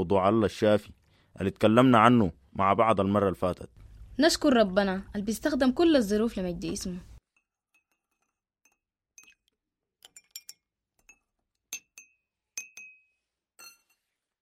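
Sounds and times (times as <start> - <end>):
speech: 0.0 - 7.1
small tea glasses clinking as tea is served: 7.4 - 14.2.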